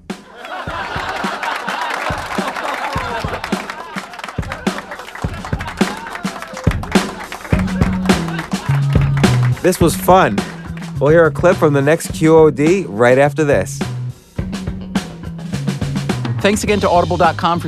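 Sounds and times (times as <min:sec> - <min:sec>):
laugh track of a cheering audience: 0:00.0 - 0:11.0
scattered clapping: 0:00.1 - 0:11.6
speech: 0:09.6 - 0:13.9, 0:16.4 - 0:17.6.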